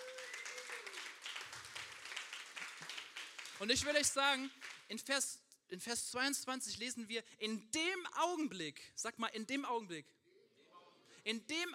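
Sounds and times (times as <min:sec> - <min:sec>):
single person clapping: 0:00.0 - 0:04.9
speech: 0:03.6 - 0:10.2, 0:11.2 - 0:11.7.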